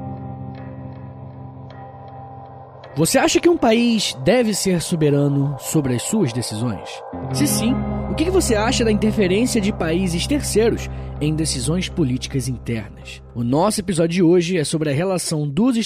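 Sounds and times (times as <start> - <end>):
podcast intro jingle: 2.8 - 13.4
speech: 3.0 - 15.8.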